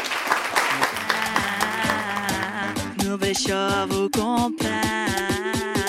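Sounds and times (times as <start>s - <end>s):
applause: 0.0s - 2.8s
speech: 3.2s - 5.7s.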